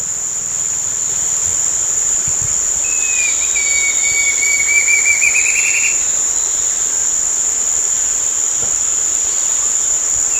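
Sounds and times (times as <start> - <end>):
loud constant high-pitched whine and hiss: 0.0 - 10.3
bird whistling one long thin note: 2.9 - 6.1.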